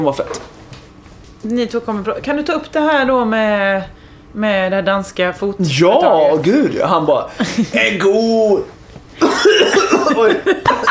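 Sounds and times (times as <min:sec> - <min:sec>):
speech: 0:00.0 - 0:00.5, 0:01.4 - 0:10.8
laughter: 0:07.4 - 0:07.8, 0:09.2 - 0:10.8
person coughing after choking on something: 0:09.2 - 0:10.3.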